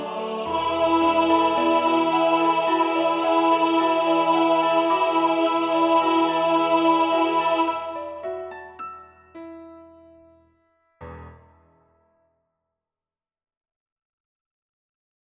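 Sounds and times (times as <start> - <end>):
tenor singing: 0.0 - 8.8.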